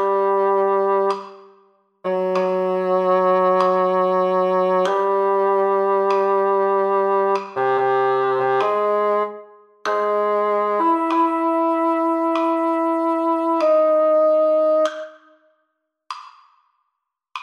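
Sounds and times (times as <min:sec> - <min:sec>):
orchestral piece: 0:00.0 - 0:01.2, 0:02.1 - 0:15.2
metronome clicking: 0:02.1 - 0:09.3, 0:09.9 - 0:15.3, 0:16.1 - 0:16.6.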